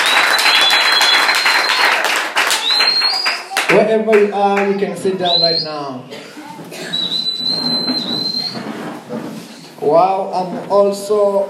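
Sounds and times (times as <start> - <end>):
steady high whistle-like tone: 0.0 - 1.9, 2.5 - 3.5, 6.9 - 8.7
audience clapping hands loudly: 0.0 - 4.8
speech: 3.7 - 6.3, 9.8 - 11.4.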